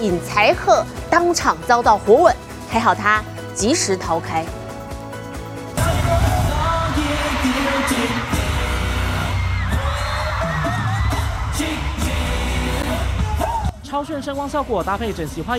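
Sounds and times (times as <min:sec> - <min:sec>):
speech: 0:00.0 - 0:04.6, 0:13.9 - 0:15.5
fans screaming at concert: 0:06.2 - 0:13.8.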